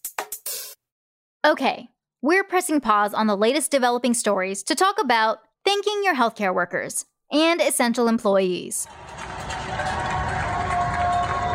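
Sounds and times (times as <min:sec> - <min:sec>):
speech: 0:01.4 - 0:09.2
many people cheering and clapping from their neighborhoods: 0:08.8 - 0:11.5.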